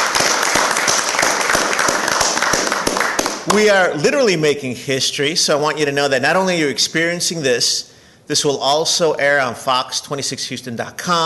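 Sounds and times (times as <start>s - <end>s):
audience applause: 0.0s - 3.8s
speech: 3.5s - 11.2s.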